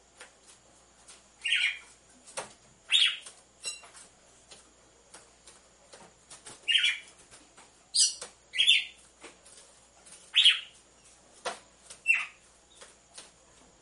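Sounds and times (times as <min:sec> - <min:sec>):
red-cowled cardinal giving harsh notes: 0:01.4 - 0:01.9, 0:02.9 - 0:03.2, 0:06.6 - 0:07.1, 0:08.0 - 0:09.0, 0:10.3 - 0:10.8, 0:12.0 - 0:12.4.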